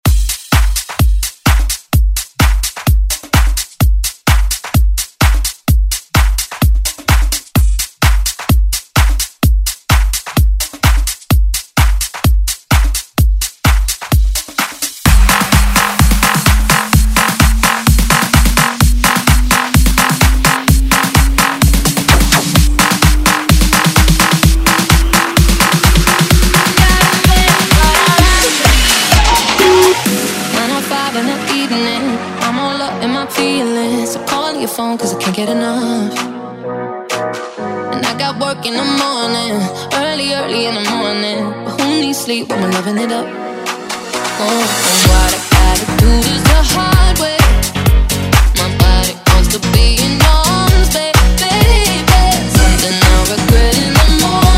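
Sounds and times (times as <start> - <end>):
dance music bootleg: 0.0 - 54.5.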